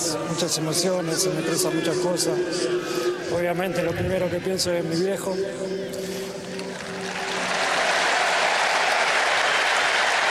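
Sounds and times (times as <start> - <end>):
speech: 0.2 - 6.4
crowd applause: 6.5 - 10.2.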